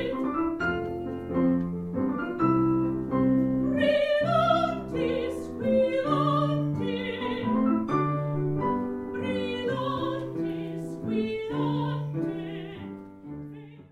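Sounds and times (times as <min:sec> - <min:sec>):
two sopranos singing a tango: 0:00.0 - 0:00.8, 0:03.6 - 0:08.2, 0:09.0 - 0:13.8
piano playing a tango: 0:00.0 - 0:13.8.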